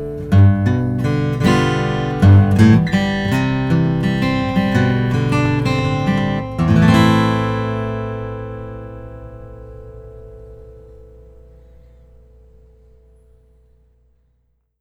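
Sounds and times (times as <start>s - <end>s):
Engelmann spruce acoustic guitar: 0.0s - 13.9s.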